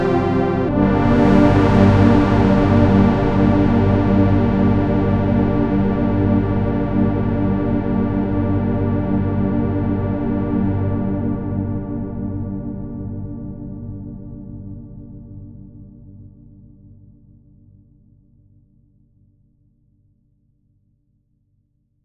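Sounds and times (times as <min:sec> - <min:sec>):
layered synth pad: 0:00.0 - 0:11.3.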